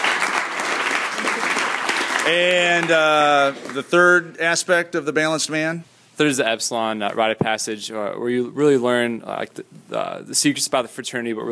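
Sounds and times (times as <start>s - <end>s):
round of applause: 0.0s - 4.0s
speech: 2.3s - 11.5s.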